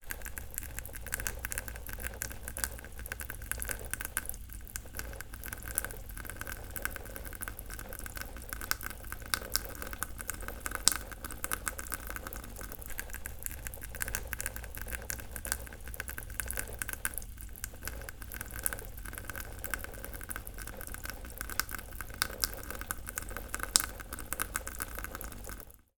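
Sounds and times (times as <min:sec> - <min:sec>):
household tap water slowly trickling onto a sponge: 0:00.0 - 0:25.9.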